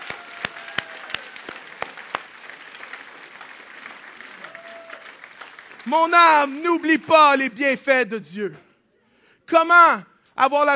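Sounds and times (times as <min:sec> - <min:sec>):
audience applauding: 0:00.0 - 0:07.4
speech: 0:05.8 - 0:08.7, 0:09.5 - 0:10.7.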